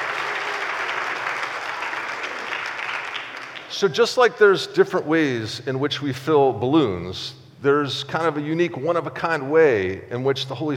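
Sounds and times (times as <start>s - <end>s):
audience applause: 0.0s - 3.8s
speech: 3.7s - 10.7s.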